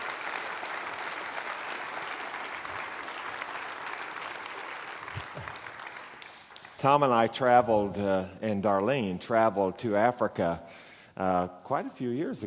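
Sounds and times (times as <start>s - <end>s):
audience applause welcoming a music pastor: 0.0s - 6.8s
speech: 6.8s - 12.4s.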